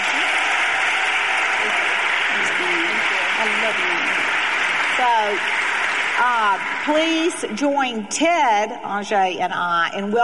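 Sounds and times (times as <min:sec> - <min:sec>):
audience applause: 0:00.0 - 0:07.7
speech: 0:03.7 - 0:04.2, 0:05.0 - 0:05.6, 0:06.2 - 0:10.2.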